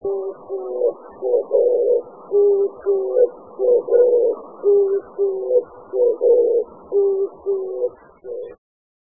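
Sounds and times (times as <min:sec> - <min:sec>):
Oriental turtle dove cooing: 0:00.0 - 0:08.6.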